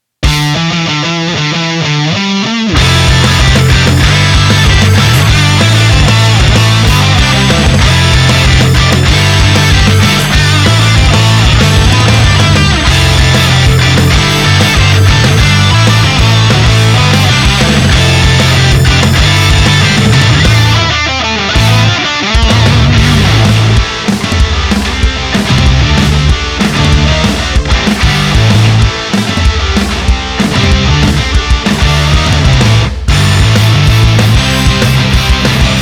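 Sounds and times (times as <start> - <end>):
off vocal instrumental music: 0.2 - 35.7.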